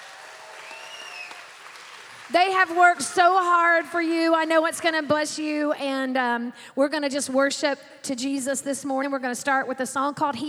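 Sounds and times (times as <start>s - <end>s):
audience applauding children's choir: 0.0s - 3.9s
speech: 2.3s - 10.4s.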